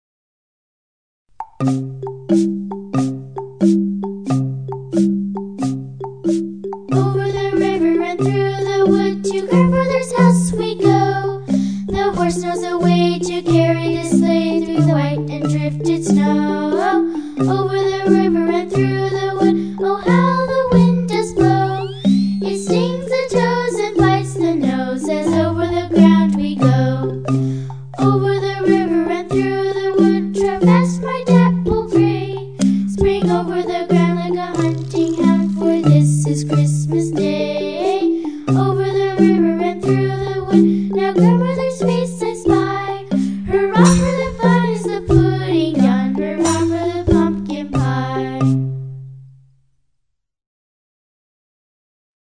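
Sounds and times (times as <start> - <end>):
marimba: 1.3 - 49.5
person singing: 7.0 - 27.3, 28.0 - 48.6.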